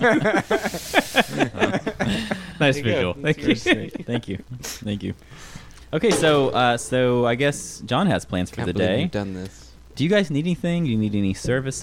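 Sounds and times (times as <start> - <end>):
laughter: 0.0 - 4.5
speech: 0.0 - 11.8
air hissing out of a balloon: 0.4 - 1.4.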